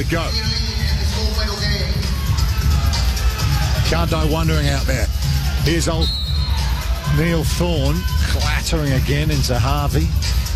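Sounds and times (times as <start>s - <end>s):
speech: 0.0s - 0.6s, 3.9s - 6.2s, 7.1s - 10.4s
crowd cheering wildly: 1.6s - 8.8s.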